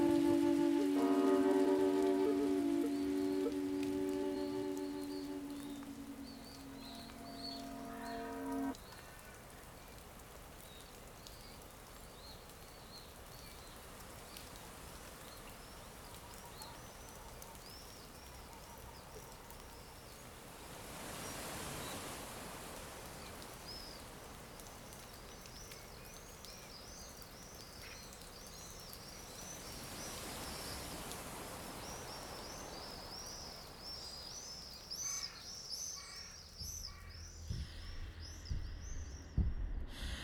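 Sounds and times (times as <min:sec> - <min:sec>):
soundscape: 0:00.0 - 0:08.8, 0:37.1 - 0:40.2.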